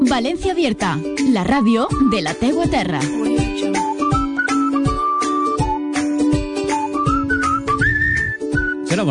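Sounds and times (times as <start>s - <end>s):
speech: 0.2s - 3.3s
backing track with steady thumping beat and bass: 1.0s - 9.0s
people whistling a tune: 1.9s - 2.4s, 3.6s - 5.8s, 6.6s - 9.0s.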